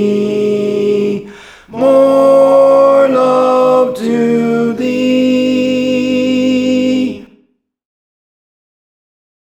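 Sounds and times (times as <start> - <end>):
tenor singing songs: 0.0 - 7.4.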